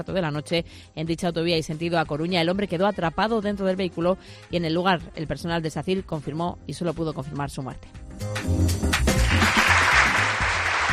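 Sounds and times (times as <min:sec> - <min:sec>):
speech: 0:00.0 - 0:09.1
applause: 0:08.8 - 0:10.9.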